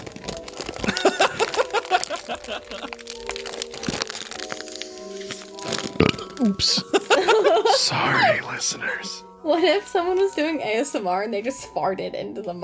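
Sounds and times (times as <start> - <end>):
bag of animal cookies being opened: 0.0 - 7.3
laughter: 0.8 - 2.9, 6.7 - 8.4
speech: 6.4 - 7.1, 7.7 - 12.6.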